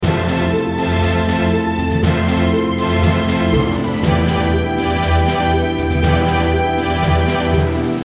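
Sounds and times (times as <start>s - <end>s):
short RPG background music: 0.0s - 8.0s.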